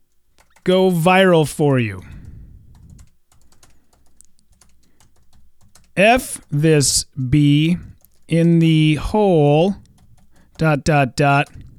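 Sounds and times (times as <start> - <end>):
rapid typing on a computer keyboard replying to an email: 0.1 - 0.6, 2.1 - 6.0, 7.9 - 8.3, 9.8 - 10.6
speech: 0.7 - 2.1, 6.0 - 9.8, 10.6 - 11.7.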